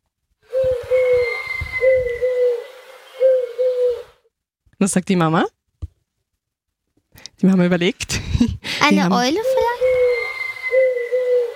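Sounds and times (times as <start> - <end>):
pigeon cooing: 0.5 - 4.2, 9.5 - 11.5
speech: 4.8 - 5.6, 7.4 - 10.0.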